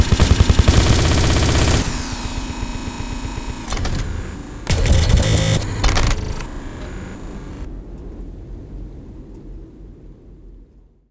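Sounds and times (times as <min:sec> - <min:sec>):
prototype military robot sound effects: 0:00.8 - 0:07.7.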